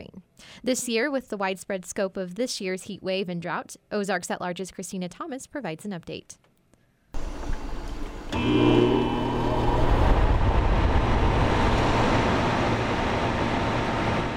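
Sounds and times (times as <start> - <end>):
speech: 0.6 - 6.5
air conditioner compressor click and hum: 7.2 - 11.9
air conditioner starting up and roaring: 7.2 - 14.3.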